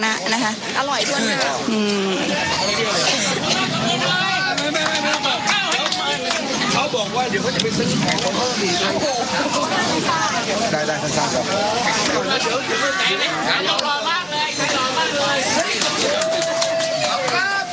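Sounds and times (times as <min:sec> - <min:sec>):
speech: 0:00.0 - 0:03.3, 0:07.0 - 0:16.7
roadside villagers cheering: 0:01.1 - 0:17.7
roadside villagers clapping: 0:03.0 - 0:08.4, 0:15.1 - 0:17.7.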